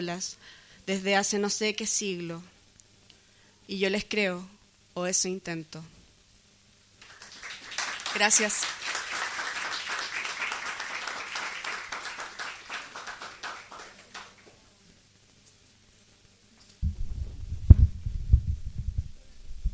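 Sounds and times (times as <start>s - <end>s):
speech: 0.0s - 2.5s, 3.7s - 6.0s, 8.2s - 8.9s
audience clapping: 7.0s - 14.6s
low thumping: 16.8s - 19.7s.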